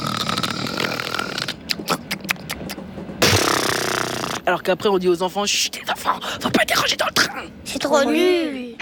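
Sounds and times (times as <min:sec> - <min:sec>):
voice imitating loud raspy snoring: 0:00.0 - 0:02.1, 0:03.2 - 0:04.5
speech: 0:04.5 - 0:08.7.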